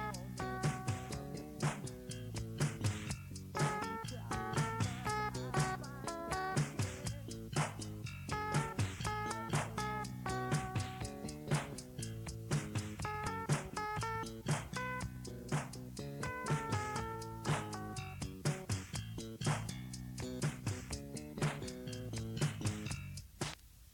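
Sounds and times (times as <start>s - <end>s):
faint vocals: 0.0s - 2.0s, 3.6s - 7.6s
slap bass: 0.0s - 23.3s.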